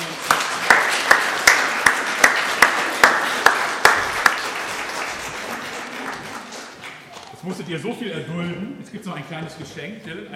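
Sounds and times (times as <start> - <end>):
audience applause: 0.0 - 7.2
speech: 7.5 - 10.3.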